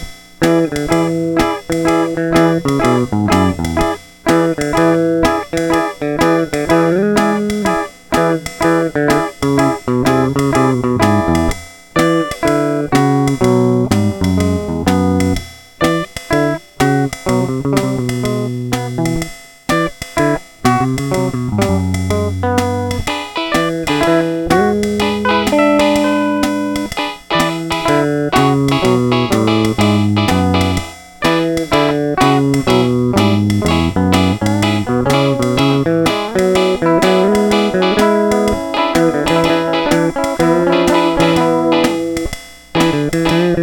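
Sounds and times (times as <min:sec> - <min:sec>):
ragtime music: 0:00.4 - 0:19.2, 0:19.8 - 0:43.6.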